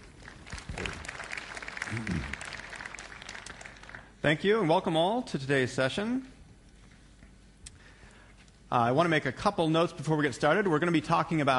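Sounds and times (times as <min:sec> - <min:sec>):
audience applause: 0:00.0 - 0:04.2
brief voice murmuring: 0:01.9 - 0:02.4
speech: 0:01.9 - 0:02.4, 0:04.2 - 0:06.4, 0:08.7 - 0:11.5.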